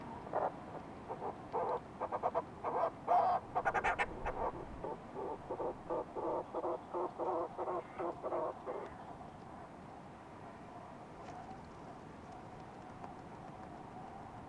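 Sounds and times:
fulmar prion call series: 1.1 - 8.8.

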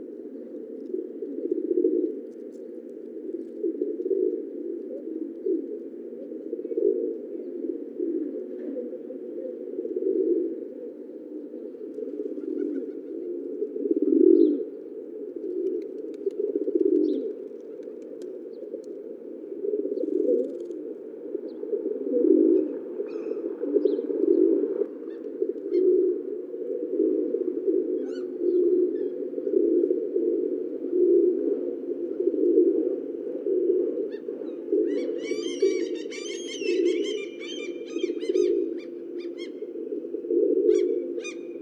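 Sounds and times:
pigeon cooing: 0.0 - 41.6
small birds twittering: 34.9 - 39.6.

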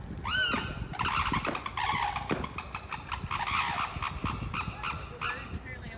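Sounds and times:
golden takin calling: 0.2 - 5.7.

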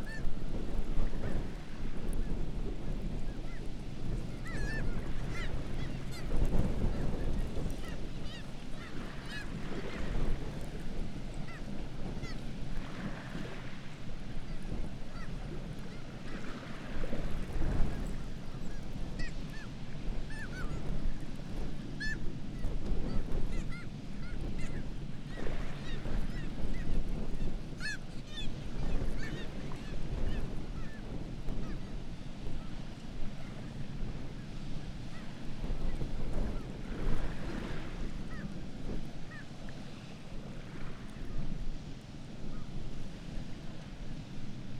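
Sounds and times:
continuous low roar of water or wind: 0.0 - 44.7
black-legged kittiwakes giving nasal calls: 3.3 - 10.2, 18.5 - 20.9, 21.8 - 31.9, 38.2 - 38.6, 39.2 - 39.6.

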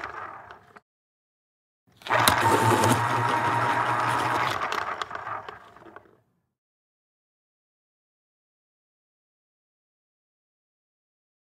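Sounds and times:
pencil sharpener: 2.0 - 6.0.

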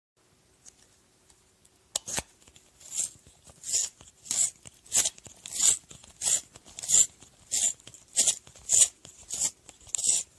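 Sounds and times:
pencil sharpener: 2.8 - 10.3.

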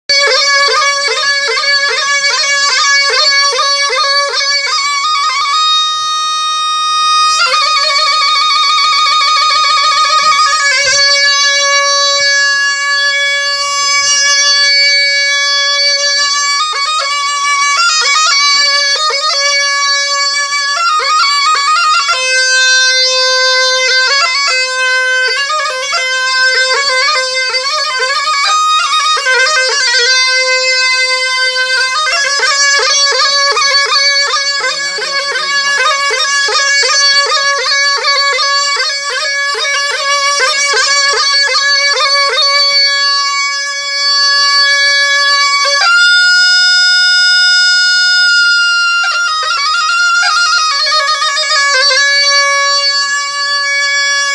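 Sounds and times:
qushmeh playing: 0.1 - 54.3
laughter: 9.9 - 12.3, 13.6 - 15.0, 15.9 - 17.2, 17.9 - 19.0, 32.0 - 38.4.

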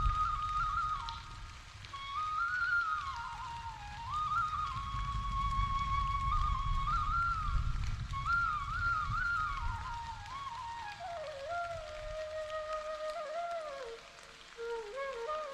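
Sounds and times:
flute playing: 0.0 - 15.5
rain: 0.0 - 15.5.

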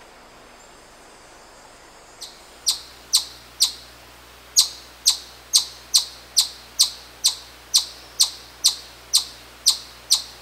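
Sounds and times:
Tamias chipmunk: 2.2 - 3.9, 4.6 - 10.4.

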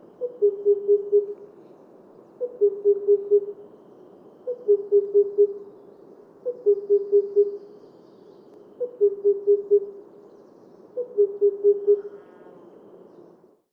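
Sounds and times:
Himalayan cuckoo calling: 0.1 - 1.4, 2.4 - 3.6, 4.4 - 5.6, 6.4 - 7.7, 8.8 - 10.0, 11.0 - 12.2.

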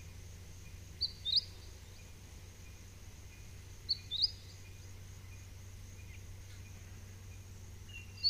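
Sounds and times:
mistletoebird giving bright high paired notes and softer chirps: 0.1 - 2.8, 3.4 - 6.8, 7.9 - 8.2.

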